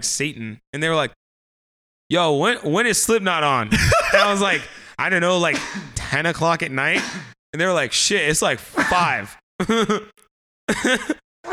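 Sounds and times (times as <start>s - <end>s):
speech: 0.0s - 1.2s, 2.1s - 11.5s
laughter: 3.6s - 4.9s, 8.7s - 11.5s
person sneezing: 5.5s - 6.2s, 7.0s - 7.4s.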